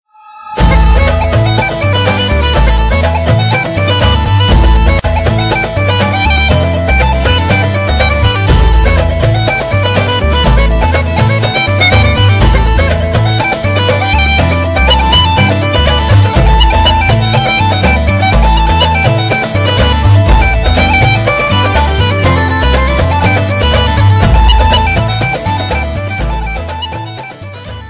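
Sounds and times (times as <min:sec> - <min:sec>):
Irish dance music: 0:00.6 - 0:27.8.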